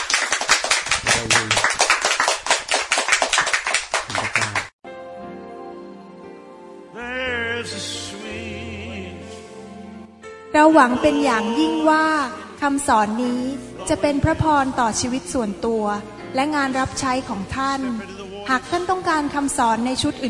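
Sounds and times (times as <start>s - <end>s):
audience clapping: 0.0s - 4.8s
speech: 10.6s - 20.2s.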